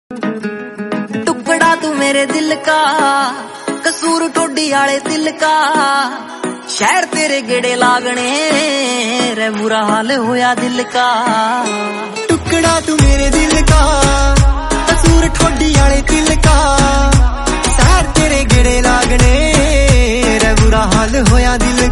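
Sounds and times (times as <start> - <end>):
romantic Punjabi song: 0.1 - 21.9.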